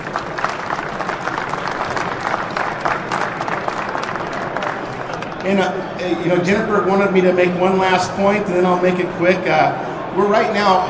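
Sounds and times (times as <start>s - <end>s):
audience applause: 0.0s - 5.6s
speech: 5.5s - 10.8s.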